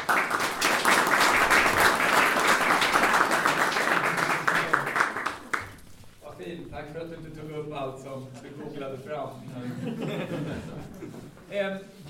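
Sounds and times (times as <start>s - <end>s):
audience applause: 0.0s - 6.0s
laughter: 2.7s - 5.6s, 8.4s - 11.4s.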